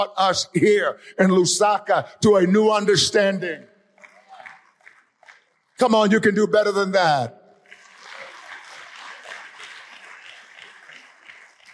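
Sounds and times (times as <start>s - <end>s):
speech: 0.0s - 3.7s, 5.8s - 7.4s
large crowd applause: 4.0s - 5.8s, 7.6s - 11.7s.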